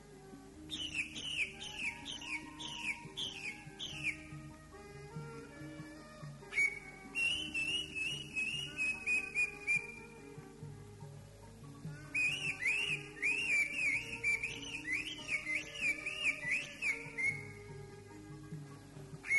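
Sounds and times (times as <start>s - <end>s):
greater green leafbird song: 0.7s - 4.5s, 6.5s - 10.1s, 12.0s - 17.7s, 19.2s - 19.3s.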